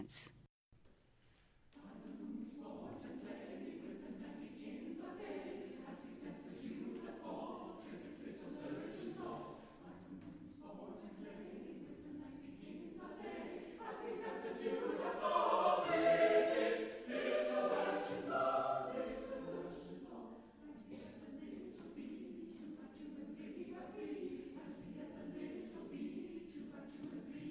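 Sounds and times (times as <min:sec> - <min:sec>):
vocal ensemble singing: 0:01.8 - 0:27.4.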